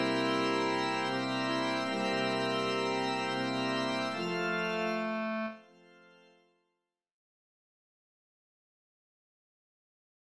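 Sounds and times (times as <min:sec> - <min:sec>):
three-voice organ music: 0:00.0 - 0:06.4.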